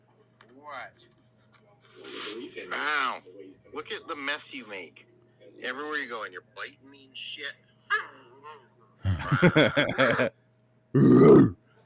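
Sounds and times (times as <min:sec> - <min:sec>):
speech: 0:02.6 - 0:08.6, 0:09.2 - 0:11.6
laughter: 0:09.0 - 0:10.3
dog grunting hoarsely: 0:11.0 - 0:11.6.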